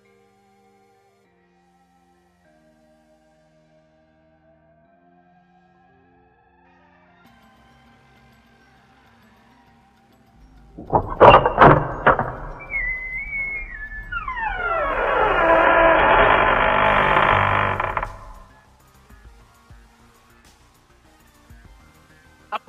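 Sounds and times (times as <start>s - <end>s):
door latch clicks: 10.8s - 18.5s.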